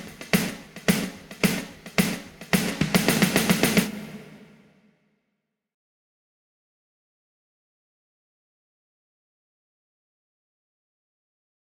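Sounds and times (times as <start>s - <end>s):
drums: 0.0s - 4.8s.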